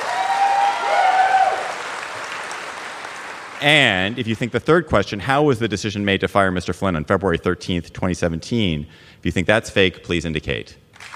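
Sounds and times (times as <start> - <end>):
audience applause: 0.0 - 4.5, 11.0 - 11.1
speech: 3.6 - 11.1.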